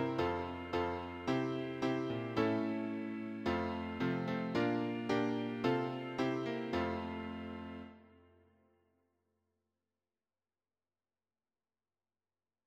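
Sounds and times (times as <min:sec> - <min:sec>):
piano accompaniment for church and Sunday school hymns: 0:00.0 - 0:08.0.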